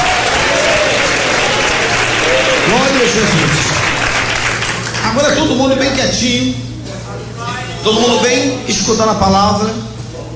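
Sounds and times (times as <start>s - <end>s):
crowd clapping: 0.0s - 5.6s
speech: 3.0s - 3.8s, 5.1s - 6.7s, 7.8s - 9.9s.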